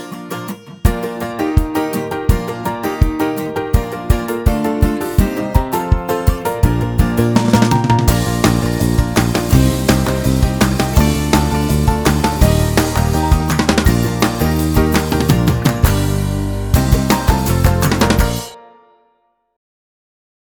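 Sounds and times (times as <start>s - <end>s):
rhythmic beat: 0.8s - 18.6s.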